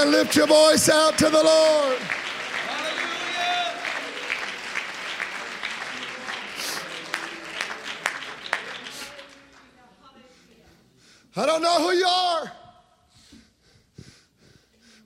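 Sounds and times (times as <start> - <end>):
speech: 0.0 - 2.2, 11.4 - 12.6
audience clapping hands: 0.0 - 9.9.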